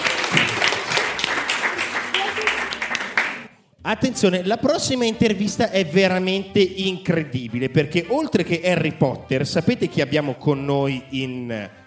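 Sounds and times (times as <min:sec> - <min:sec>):
applause from studio audience: 0:00.0 - 0:03.5
speech: 0:03.9 - 0:11.8.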